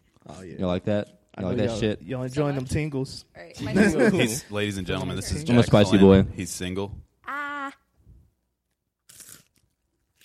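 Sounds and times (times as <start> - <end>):
speech: 0.3 - 7.0
crunchy hot fries being bitten and chewed for ASMR: 9.0 - 10.2.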